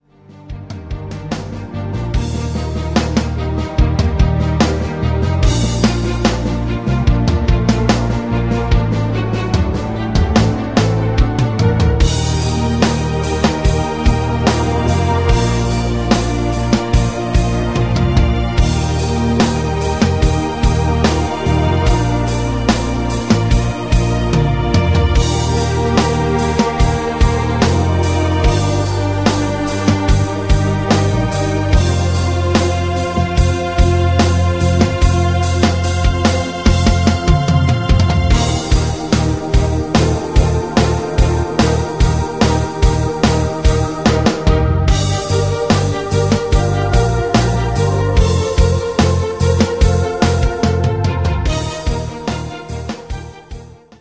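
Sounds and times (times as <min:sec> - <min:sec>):
rhythm: 0:00.3 - 0:54.0.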